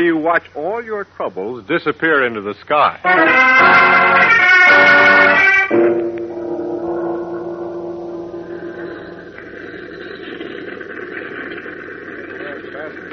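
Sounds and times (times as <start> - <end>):
speech: 0.0 - 6.0
clipper airplane engines running before takeoff: 3.2 - 13.1.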